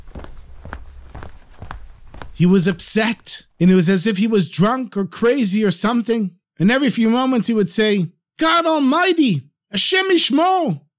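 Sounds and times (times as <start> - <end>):
footsteps pacing back and forth: 0.0 - 3.5
speech: 2.4 - 10.9.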